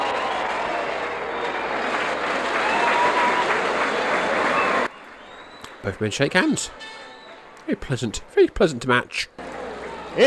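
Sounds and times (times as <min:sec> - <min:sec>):
crowd applauding after wrestling match win: 0:00.0 - 0:06.6
speech: 0:05.9 - 0:07.0, 0:07.7 - 0:09.4.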